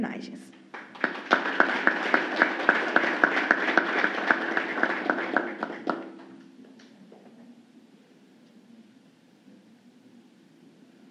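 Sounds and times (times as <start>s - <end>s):
audience applause: 0.7s - 6.3s.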